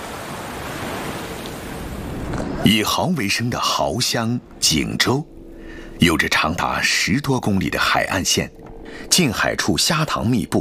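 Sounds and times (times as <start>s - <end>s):
sea tide washing in and out on a shoreline: 0.0s - 4.2s
speech: 2.6s - 5.4s, 6.0s - 10.5s.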